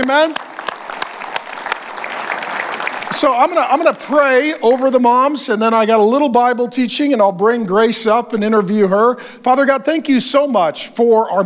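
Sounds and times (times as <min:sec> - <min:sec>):
speech: 0:00.0 - 0:00.5, 0:03.1 - 0:11.4
audience applause: 0:00.0 - 0:05.0.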